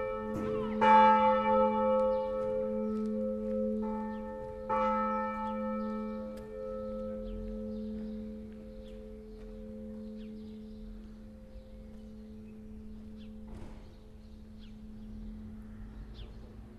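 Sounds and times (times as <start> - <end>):
bells rung by a bell ringer: 0.0 - 13.4.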